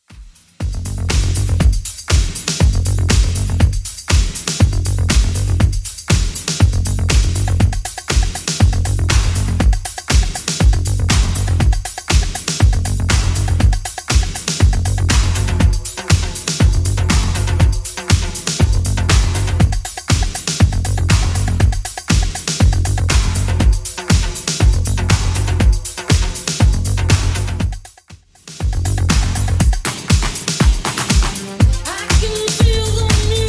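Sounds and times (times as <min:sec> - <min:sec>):
80s drum machine beat at 120 bpm: 0:00.0 - 0:33.4.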